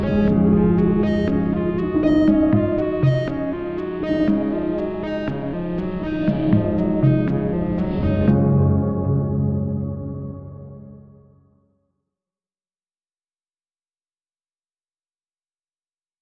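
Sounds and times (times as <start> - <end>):
piano house music: 0.0 - 11.3.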